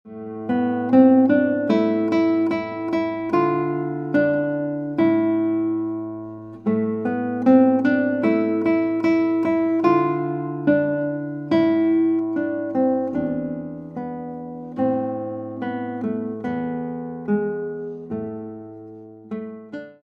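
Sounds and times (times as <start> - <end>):
guitar: 0.0 - 20.0.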